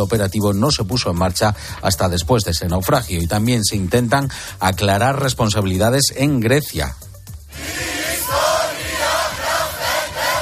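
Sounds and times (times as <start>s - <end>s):
speech: 0.0s - 7.8s
crowd shouting in protest over the state of the railways: 7.6s - 10.3s.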